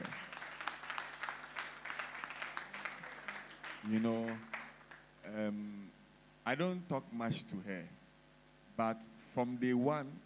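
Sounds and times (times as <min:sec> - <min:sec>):
audience applause: 0:00.0 - 0:05.0
speech: 0:03.8 - 0:04.5, 0:05.2 - 0:08.0, 0:08.8 - 0:10.2.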